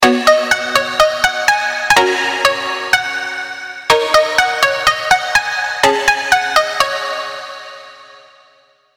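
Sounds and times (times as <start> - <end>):
plucked melody: 0.0 - 7.2.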